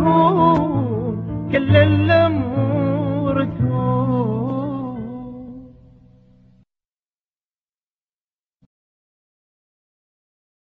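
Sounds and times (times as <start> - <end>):
piano: 0.0 - 6.6.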